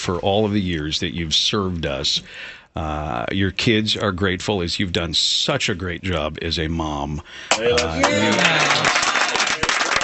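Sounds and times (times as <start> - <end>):
speech: 0.0 - 9.0
people clapping: 7.5 - 10.0.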